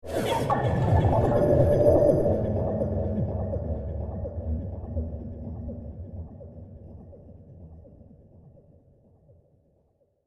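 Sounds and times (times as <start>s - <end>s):
high-tech movie trailer ambience: 0.1s - 8.1s.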